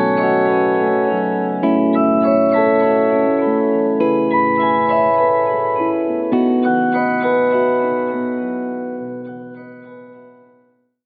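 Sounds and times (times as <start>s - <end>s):
guitar with prism shift effect: 0.0s - 10.7s.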